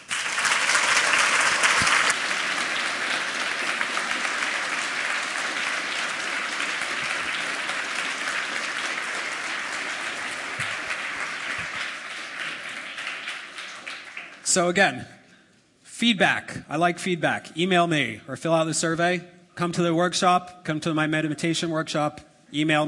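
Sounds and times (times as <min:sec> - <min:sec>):
audience applause: 0:00.0 - 0:14.5
speech: 0:14.6 - 0:15.2, 0:16.0 - 0:22.8.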